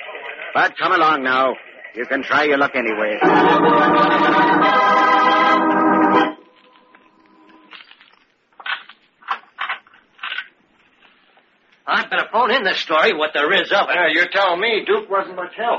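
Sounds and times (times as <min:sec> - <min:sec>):
speech: 0:00.5 - 0:04.8, 0:12.1 - 0:15.7
electric crackling buzz of execution power test: 0:03.2 - 0:09.0.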